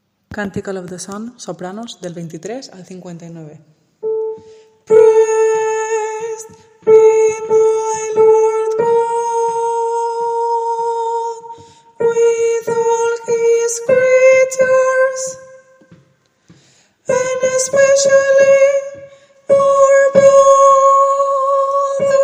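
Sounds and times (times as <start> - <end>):
soprano singing: 4.0 - 16.0, 17.0 - 22.2.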